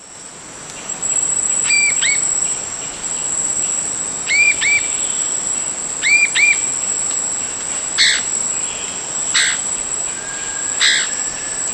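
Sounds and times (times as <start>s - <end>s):
steady high-pitched insect drone: 0.0s - 11.7s
bird whistled notes: 1.6s - 2.5s, 4.3s - 5.4s, 6.0s - 6.7s, 8.0s - 11.7s.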